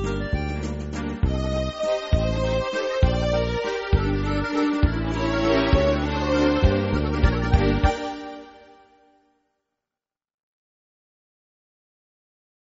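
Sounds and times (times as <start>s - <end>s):
synthesizer: 0.0s - 9.3s.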